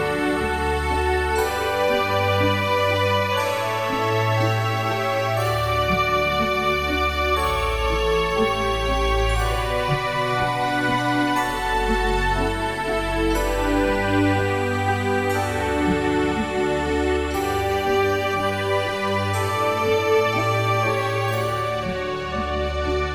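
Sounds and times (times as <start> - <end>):
canon music: 0.0 - 23.1.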